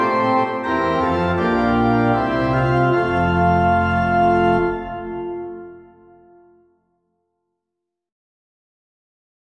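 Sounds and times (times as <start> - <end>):
organ: 0.0 - 6.7.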